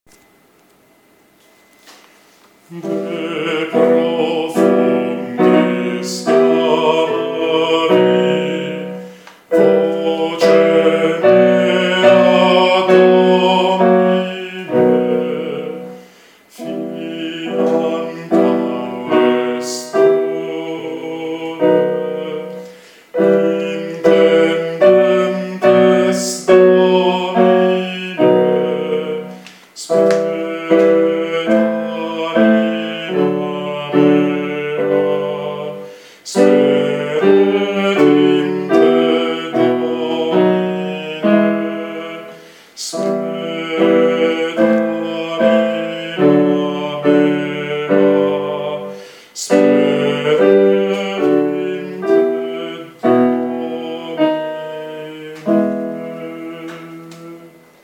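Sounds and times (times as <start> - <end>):
contralto voices singing: 2.7 - 57.8.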